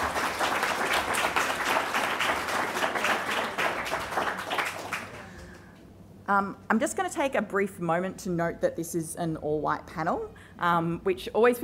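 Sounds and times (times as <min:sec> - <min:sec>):
crowd applauding panellists: 0:00.0 - 0:05.7
speech: 0:06.3 - 0:11.6.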